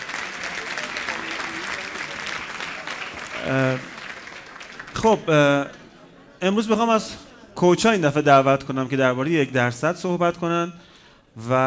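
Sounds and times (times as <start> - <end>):
audience applause: 0.0 - 5.7
speech: 3.4 - 3.9, 5.0 - 5.8, 6.4 - 11.6.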